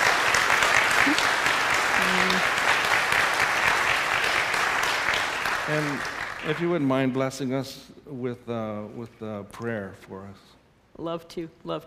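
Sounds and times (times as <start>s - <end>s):
audience clapping: 0.0s - 7.2s
speech: 5.7s - 11.8s.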